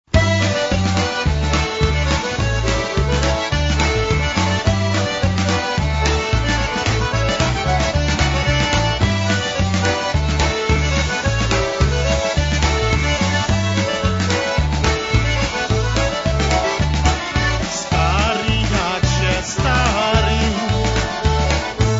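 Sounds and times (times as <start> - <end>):
polka music: 0.0 - 21.9.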